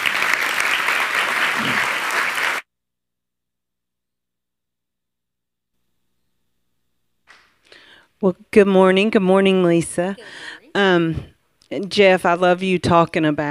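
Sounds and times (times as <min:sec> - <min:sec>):
audience applause for church ministry leaders at a Sunday morning service: 0:00.0 - 0:02.6
speech: 0:08.2 - 0:13.5.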